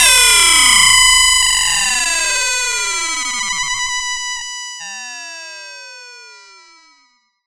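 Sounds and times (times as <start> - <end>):
sci-fi Prophet-5 synth effect: 0.0 - 4.6.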